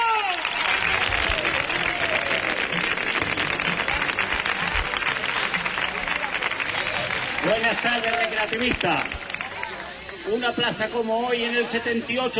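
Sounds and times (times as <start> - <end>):
audience applause: 0.0 - 10.2
speech: 7.7 - 9.2, 10.3 - 12.3.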